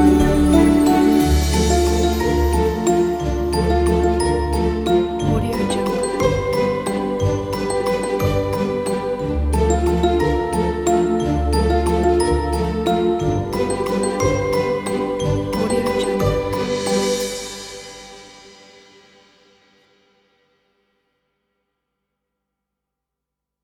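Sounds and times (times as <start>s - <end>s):
magic forest ambience: 0.0s - 18.5s.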